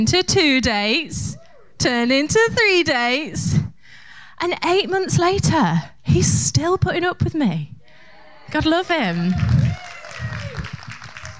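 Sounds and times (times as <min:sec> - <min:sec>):
speech: 0:00.0 - 0:03.6, 0:04.4 - 0:07.7, 0:08.5 - 0:09.5
audience cheering and applause: 0:08.5 - 0:11.3.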